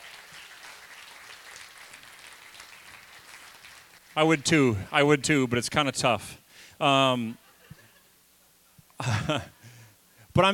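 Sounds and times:
audience clapping: 0.0 - 4.8
speech: 4.2 - 7.4, 9.0 - 9.6, 10.4 - 10.5.

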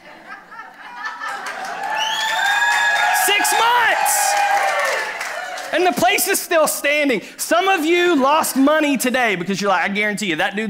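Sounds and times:
laughter: 0.0 - 2.1
audience applause: 1.1 - 6.1
speech: 5.7 - 10.6.

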